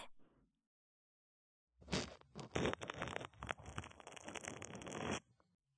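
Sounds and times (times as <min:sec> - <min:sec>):
brushing of the right ear ASMR: 0:01.9 - 0:05.2.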